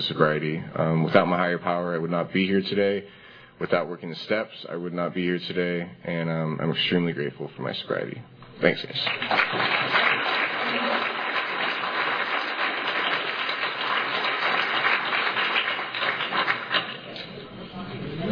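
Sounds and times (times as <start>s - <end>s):
speech: 0.0s - 10.2s
audience applause: 9.0s - 17.3s.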